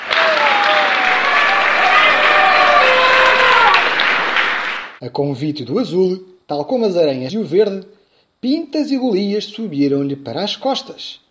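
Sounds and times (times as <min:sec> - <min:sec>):
loud applause: 0:00.0 - 0:05.0
speech: 0:05.0 - 0:11.2.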